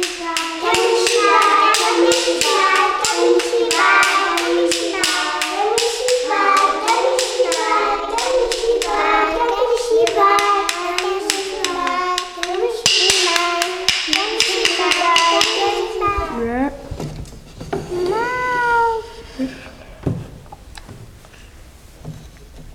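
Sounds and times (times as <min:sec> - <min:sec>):
children tapping to call others to see a story: 0:00.0 - 0:16.3
children's voices: 0:00.0 - 0:16.9, 0:17.8 - 0:19.9.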